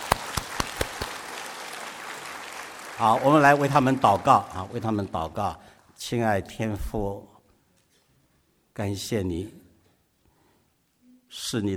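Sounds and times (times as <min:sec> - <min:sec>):
audience applauding: 0:00.0 - 0:05.4
speech: 0:03.0 - 0:07.3, 0:08.8 - 0:09.6, 0:11.3 - 0:11.7.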